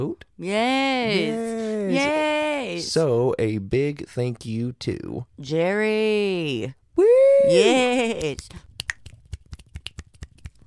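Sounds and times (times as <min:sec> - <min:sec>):
speech: 0:00.0 - 0:08.7
finger snapping: 0:08.8 - 0:10.6.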